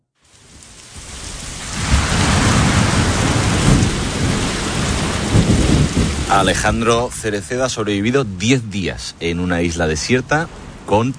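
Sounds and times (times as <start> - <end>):
thunderstorm: 0.4 - 9.0
speech: 6.3 - 11.1.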